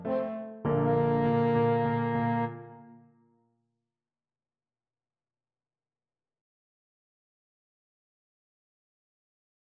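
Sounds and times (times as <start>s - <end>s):
french horn fanfare: 0.0s - 2.9s.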